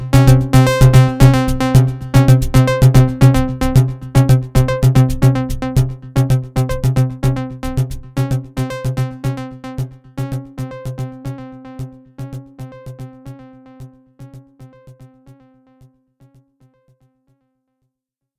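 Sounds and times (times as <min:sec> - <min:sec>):
analog synth kick drum: 0:00.0 - 0:10.9.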